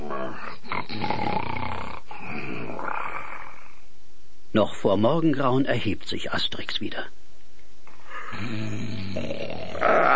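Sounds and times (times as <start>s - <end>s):
loud rasping snoring: 0.0s - 3.6s, 8.3s - 10.1s
speech: 0.3s - 1.2s, 4.6s - 7.2s, 8.3s - 10.1s.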